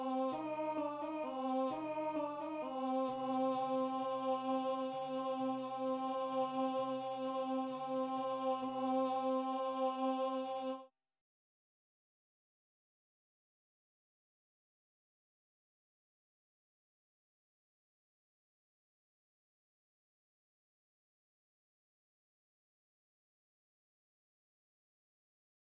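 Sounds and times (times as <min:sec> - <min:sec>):
TTBB male choir singing: 0:00.0 - 0:10.9.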